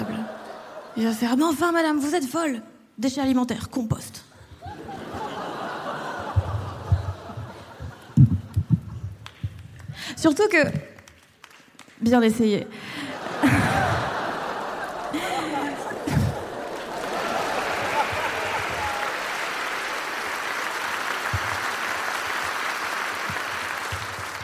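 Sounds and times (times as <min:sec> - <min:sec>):
laughter: 0:00.0 - 0:01.2, 0:04.6 - 0:08.9, 0:12.9 - 0:20.4
speech: 0:01.0 - 0:04.2, 0:10.2 - 0:10.8, 0:12.0 - 0:13.6
sparse pity applause: 0:13.1 - 0:24.4.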